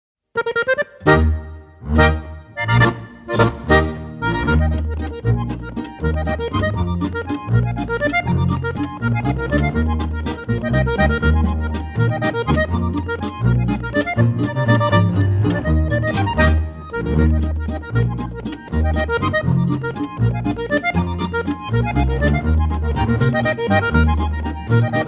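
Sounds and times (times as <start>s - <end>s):
landler dance music: 0.4s - 25.0s.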